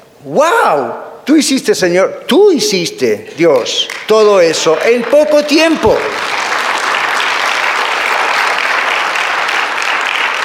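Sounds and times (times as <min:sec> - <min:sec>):
speech: 0:00.2 - 0:06.5
audience applause: 0:03.9 - 0:10.4.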